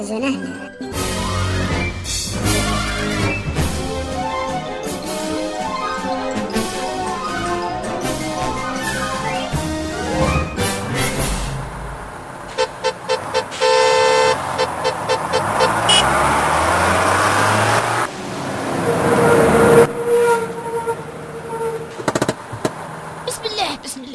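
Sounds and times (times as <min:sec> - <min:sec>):
rumbling road noise inside a moving car: 0:01.0 - 0:24.1
sharp car horn honks: 0:12.5 - 0:16.4
clunks and thumps: 0:21.9 - 0:22.8.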